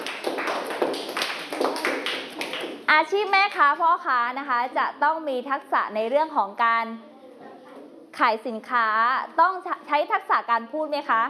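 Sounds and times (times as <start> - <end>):
classroom applause for a group of pupils: 0.0 - 2.8
speech: 2.9 - 7.1, 8.2 - 11.2.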